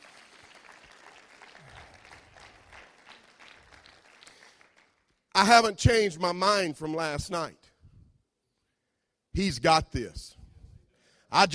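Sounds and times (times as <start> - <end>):
audience hand clap of praise: 0.0 - 5.5
speech: 5.4 - 7.6, 9.4 - 10.4, 11.3 - 11.5.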